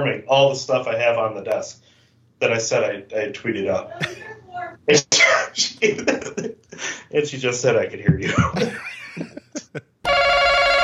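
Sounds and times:
speech: 0.0 - 9.9
laughter: 4.0 - 4.4, 5.8 - 6.6, 8.2 - 9.9
loud steady electronic phone ring: 10.1 - 10.8.

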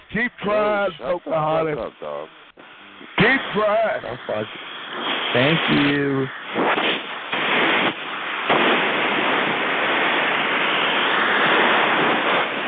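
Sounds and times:
speech: 0.1 - 2.4, 3.0 - 7.0
heavy storm surf crashing ashore: 6.5 - 12.6.

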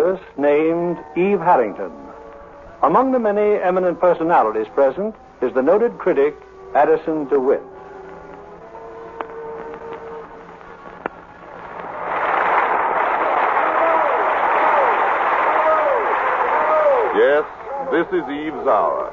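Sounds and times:
speech: 1.1 - 2.0, 2.8 - 7.7, 18.0 - 19.1
loud sustained applause in a hall: 11.5 - 19.1.

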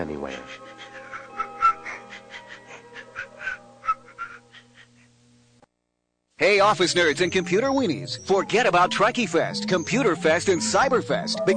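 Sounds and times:
speech: 0.0 - 0.9, 6.4 - 11.5
whistling nostril: 3.4 - 4.4.

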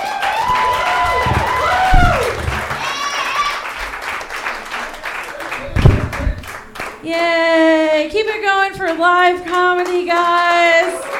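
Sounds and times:
crowd applause and cheering at a Friday night comedy showcase in a tavern: 0.0 - 7.0, 10.7 - 11.1
speech: 8.0 - 11.1.

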